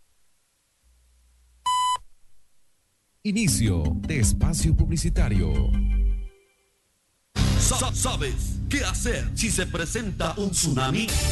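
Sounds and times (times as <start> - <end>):
time signal tone from Ecuador's Naval Oceanographic Institute: 1.7 - 2.0
speech: 3.2 - 6.0, 7.6 - 11.2.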